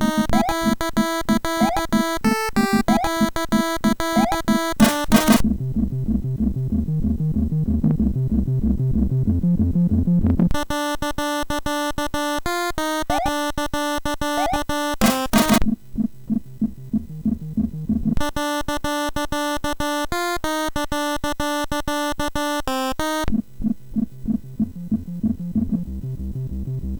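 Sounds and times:
techno music on a MOS6581R4 sound chip: 0.0s - 23.4s, 24.0s - 26.9s.

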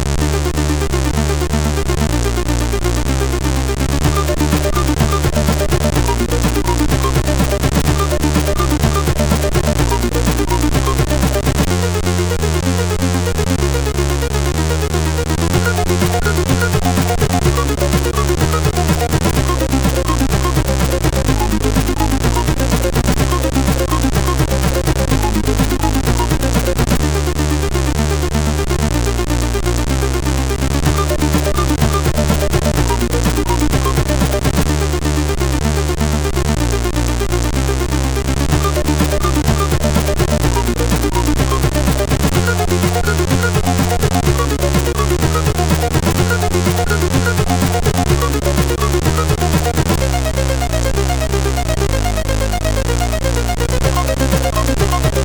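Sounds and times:
game music on SID CSG8580R5 chip: 0.2s - 55.2s.

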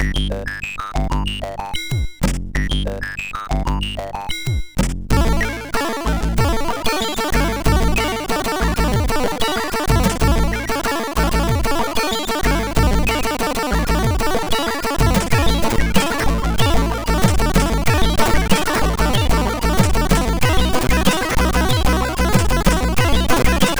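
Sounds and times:
chill SID MOS6581R4 chip music: 0.0s - 23.7s.

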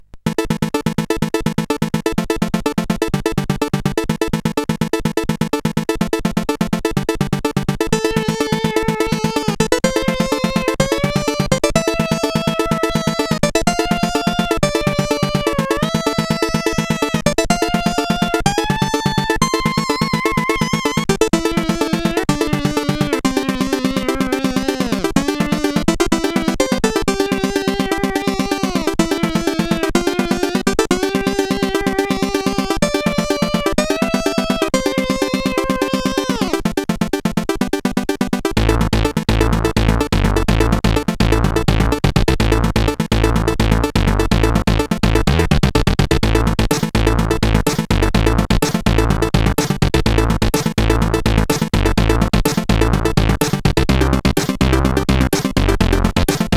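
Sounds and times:
intro tune on CSG8580R5 SID chip: 0.2s - 56.5s.

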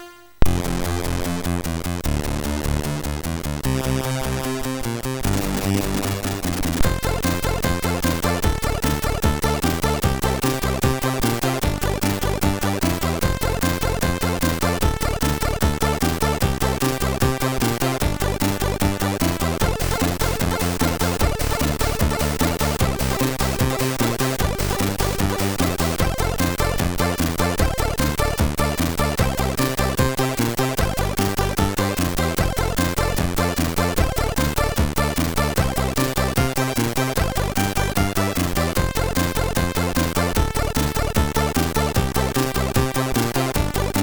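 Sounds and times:
MOS6581R3 sound chip melody: 0.5s - 44.0s.

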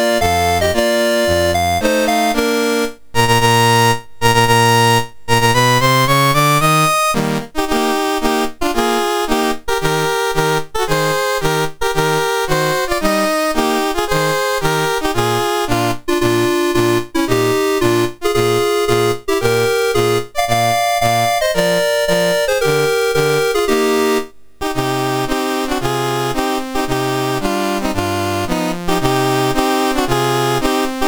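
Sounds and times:
national anthem played on a MOS6581R4 sound chip: 0.0s - 31.0s.

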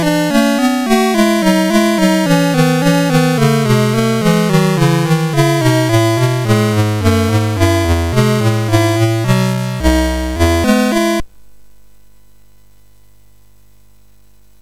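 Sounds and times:
MOS6581R4 SID chip game music: 0.0s - 11.2s.

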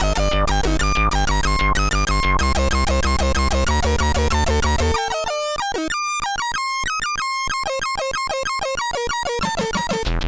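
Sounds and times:
SID 8580 chip synth loops: 0.0s - 10.1s.

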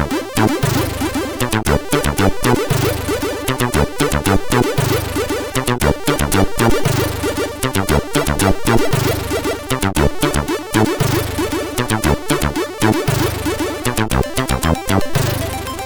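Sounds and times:
funk music on SID 8580 sound chip: 0.0s - 15.8s.

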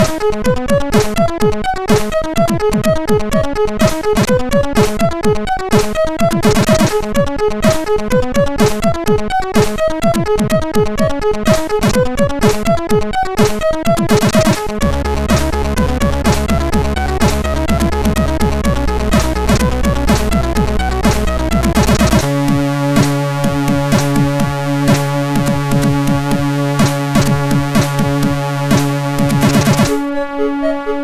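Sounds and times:
chiptune melody on MOS6581R2 SID chip: 0.0s - 31.0s.

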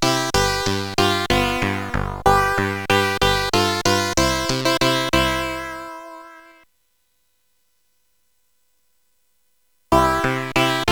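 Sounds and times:
Alpen-style music on SID CSG8580R5 chip: 0.0s - 6.6s, 9.9s - 10.9s.

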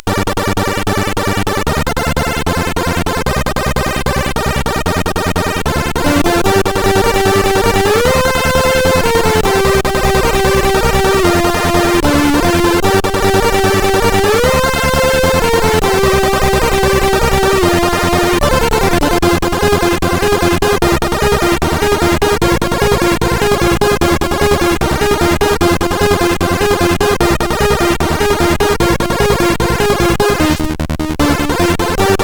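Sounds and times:
chip arpeggio on CSG8580R5 sound chip: 0.0s - 32.2s.

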